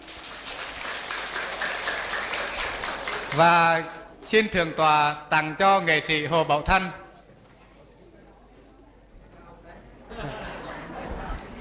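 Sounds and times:
audience applause at a Buddhist congregation gathering: 0.0 - 4.1
speech: 3.4 - 7.0
laughter: 9.9 - 11.5.

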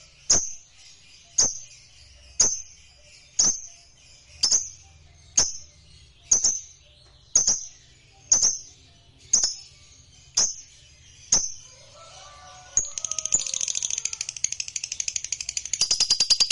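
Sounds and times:
lovebird singing: 0.0 - 16.5.

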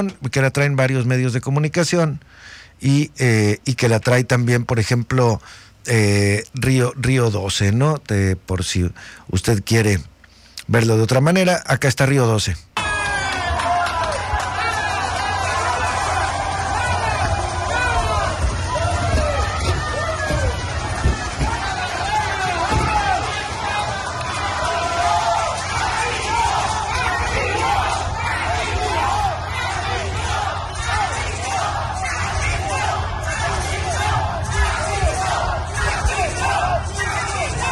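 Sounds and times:
speech: 0.0 - 10.1, 10.7 - 12.7
crowd of indigenous protesters in Ahome shouting against the installation of Mexinol: 12.8 - 37.7
protesters' voices chanting: 12.8 - 37.7.

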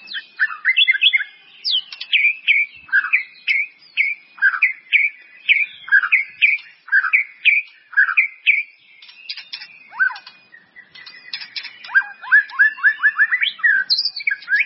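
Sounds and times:
White-rumped Shama song: 0.0 - 14.6.

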